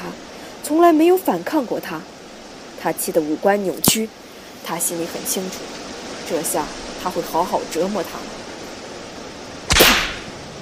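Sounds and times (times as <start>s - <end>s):
speech: 0.7s - 2.1s, 2.8s - 8.4s
whip crack: 9.7s - 10.3s.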